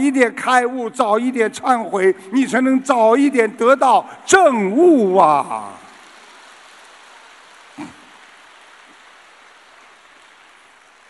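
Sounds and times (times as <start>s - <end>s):
speech: 0.0s - 5.8s
audience applause: 5.8s - 11.0s.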